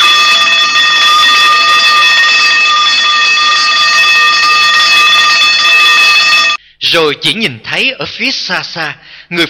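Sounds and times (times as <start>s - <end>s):
nurse call bell ringing: 0.0s - 6.6s
speech: 6.9s - 9.4s.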